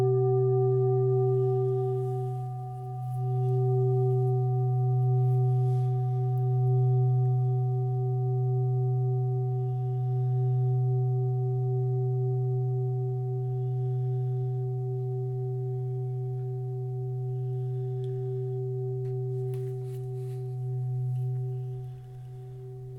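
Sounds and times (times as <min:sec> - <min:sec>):
chakra bowl: 0:00.0 - 0:22.9.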